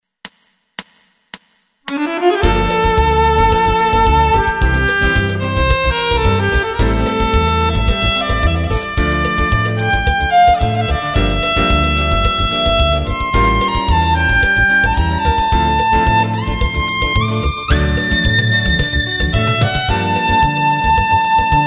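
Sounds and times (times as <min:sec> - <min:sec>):
violin: 0:01.9 - 0:21.6.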